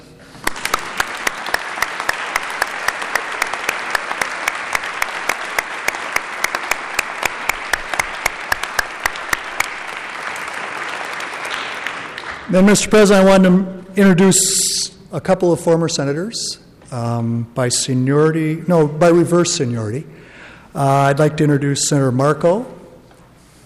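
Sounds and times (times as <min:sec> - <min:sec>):
audience applause: 0:00.4 - 0:12.5
speech: 0:12.5 - 0:22.8.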